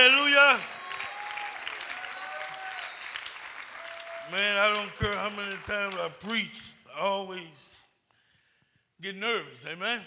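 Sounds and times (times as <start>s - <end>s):
speech: 0.0s - 0.8s, 4.3s - 7.8s, 9.0s - 10.0s
audience clapping: 0.0s - 6.7s.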